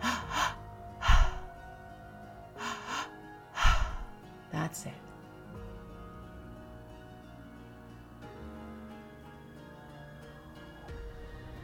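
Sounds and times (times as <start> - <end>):
deep breaths during a guided meditation: 0.0 - 1.6, 2.6 - 4.2
speech: 4.6 - 5.1.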